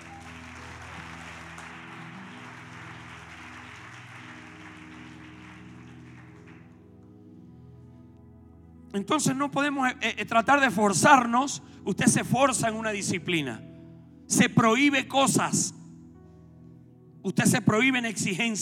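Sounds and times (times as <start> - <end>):
audience applause: 0.0 - 6.9
speech: 8.9 - 13.7, 14.3 - 15.8, 17.2 - 18.5.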